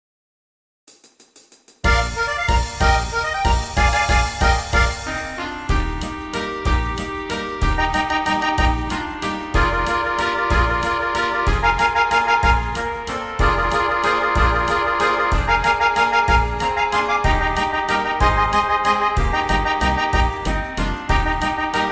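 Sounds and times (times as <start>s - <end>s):
waltz music: 1.8s - 21.9s.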